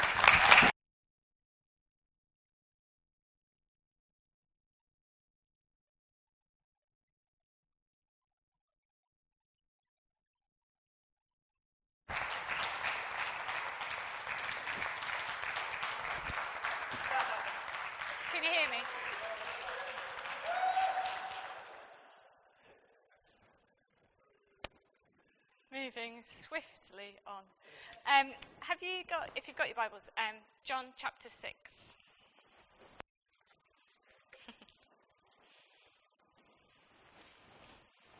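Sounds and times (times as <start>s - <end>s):
audience applause for a speaker: 0.0s - 0.7s, 12.1s - 22.3s
speech: 25.8s - 32.0s.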